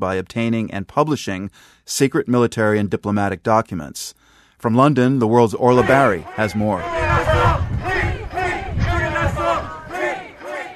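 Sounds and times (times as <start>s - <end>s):
speech: 0.0s - 8.1s
protesters chanting outside Woolwich Crown Court: 5.7s - 10.7s.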